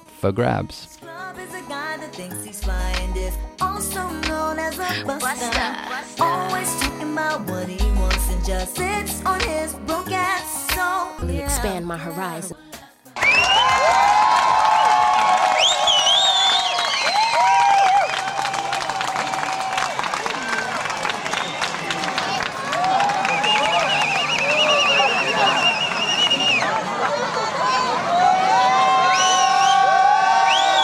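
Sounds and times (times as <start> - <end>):
speech: 0.2 - 1.1, 2.0 - 12.7
crowds cheering in Luxembourg City during solar eclipse: 13.2 - 30.8.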